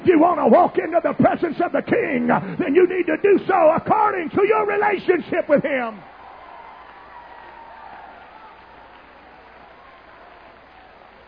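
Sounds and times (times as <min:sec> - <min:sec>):
speech: 0:00.2 - 0:06.1
audience clapping hands: 0:06.0 - 0:11.2.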